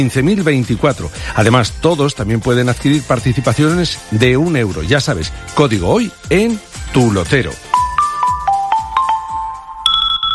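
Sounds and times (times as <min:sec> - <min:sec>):
speech: 0:00.0 - 0:07.7
electronic beeping melody: 0:07.7 - 0:10.3.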